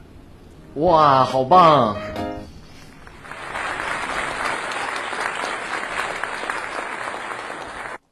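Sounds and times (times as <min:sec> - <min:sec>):
speech: 0:00.8 - 0:02.2
audience applause: 0:03.0 - 0:08.0.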